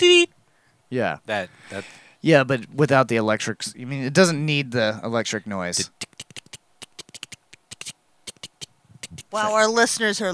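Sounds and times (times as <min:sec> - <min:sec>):
speech: 0:00.9 - 0:06.2, 0:09.3 - 0:10.3
Morse code tapped by hand: 0:05.9 - 0:09.3.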